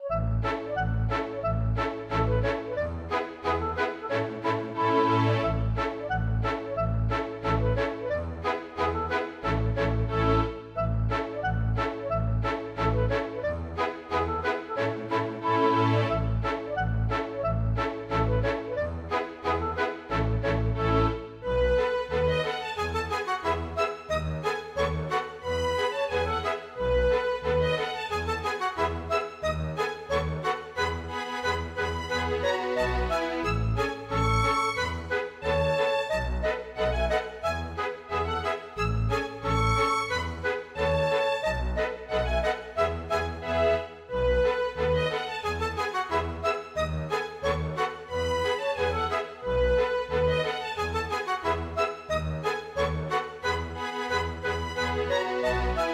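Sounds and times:
polka music: 0:00.0 - 0:55.9.

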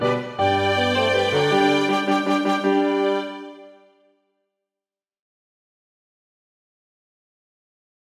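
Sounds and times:
two violins: 0:00.0 - 0:03.8
horn: 0:00.0 - 0:04.0
piano: 0:00.0 - 0:04.0.

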